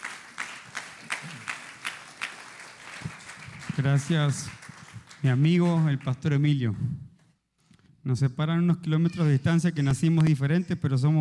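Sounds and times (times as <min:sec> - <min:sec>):
group clapping rhythmically welcoming the missionary: 0:00.0 - 0:06.5
speech: 0:03.8 - 0:04.6, 0:05.2 - 0:07.0, 0:08.0 - 0:11.1.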